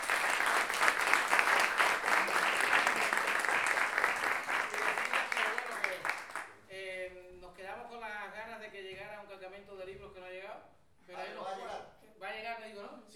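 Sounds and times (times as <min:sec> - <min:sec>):
audience applause: 0:00.0 - 0:06.5.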